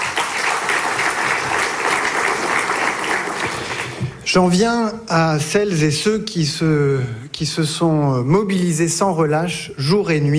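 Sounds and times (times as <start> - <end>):
applause from a sizable audience: 0.0 - 4.2
speech: 4.3 - 10.3.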